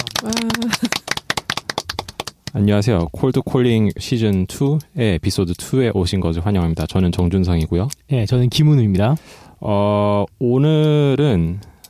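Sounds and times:
hands clapping: 0.0s - 3.2s
speech: 0.2s - 0.6s, 2.5s - 11.7s
laughter: 0.2s - 1.1s.

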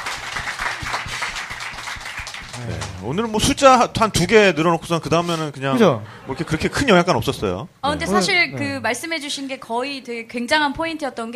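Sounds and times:
crowd clapping: 0.0s - 3.6s
speech: 2.6s - 11.3s.

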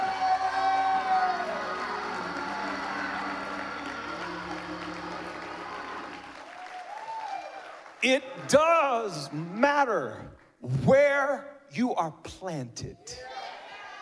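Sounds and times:
people cheering and whooping: 0.0s - 9.3s, 13.2s - 13.9s
crowd clapping: 0.0s - 9.4s
speech: 8.0s - 13.3s.

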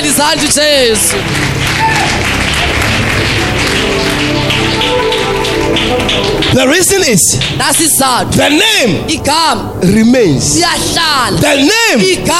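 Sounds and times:
audience clapping: 0.0s - 8.3s
speech: 0.2s - 2.4s, 5.8s - 12.3s.

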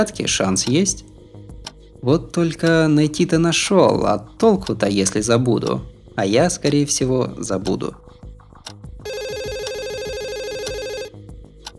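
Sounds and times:
speech: 0.0s - 1.1s, 2.0s - 8.1s
rhythmic thumping: 0.0s - 11.7s
telephone ringing: 9.1s - 11.2s.

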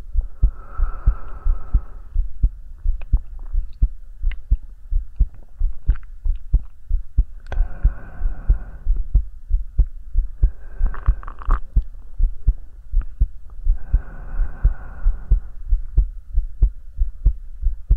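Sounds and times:
faint hum: 0.0s - 17.9s
heartbeat thumping: 0.0s - 17.9s
slow breathing: 0.4s - 2.3s, 7.5s - 9.2s, 10.4s - 11.7s, 13.6s - 15.8s.

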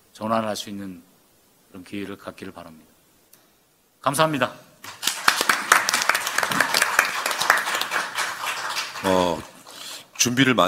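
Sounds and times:
speech: 0.2s - 1.1s, 1.7s - 2.9s, 4.0s - 4.7s, 9.0s - 9.5s, 10.2s - 10.6s
crowd applauding: 4.9s - 9.8s.

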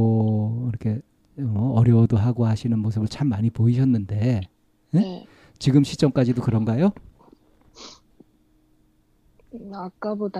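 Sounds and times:
speech: 0.8s - 7.1s, 9.5s - 10.3s
person sniffling while crying: 7.7s - 8.1s.

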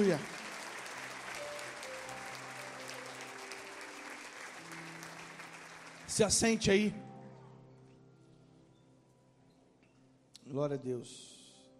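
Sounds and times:
speech: 0.0s - 0.3s, 6.1s - 7.0s, 10.6s - 11.4s
audience applause: 0.0s - 6.6s.

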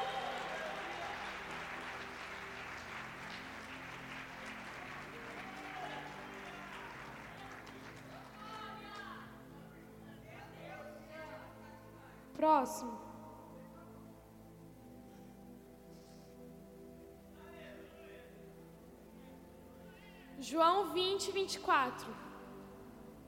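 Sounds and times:
audience applauding: 0.0s - 9.2s
speech: 12.4s - 13.1s, 20.5s - 22.3s.

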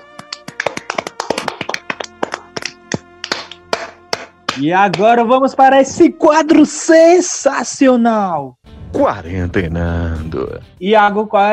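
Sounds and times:
applause: 0.0s - 5.0s
speech: 4.6s - 11.5s.

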